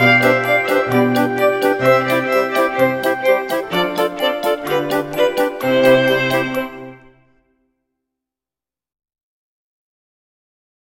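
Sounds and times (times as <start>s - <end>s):
music box: 0.0s - 7.0s.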